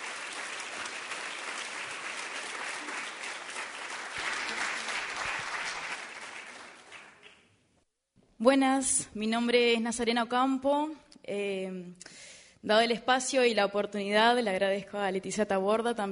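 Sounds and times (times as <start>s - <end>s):
audience applause: 0.0s - 7.5s
speech: 8.4s - 16.1s.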